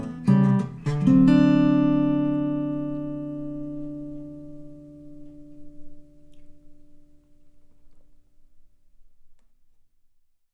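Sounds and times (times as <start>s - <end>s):
blues music: 0.0s - 6.5s.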